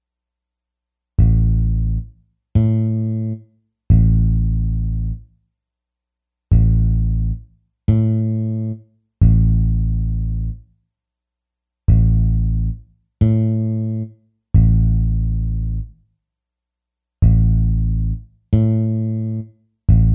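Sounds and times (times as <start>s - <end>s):
bass: 1.2s - 5.4s, 6.5s - 10.8s, 11.8s - 16.2s, 17.2s - 20.1s.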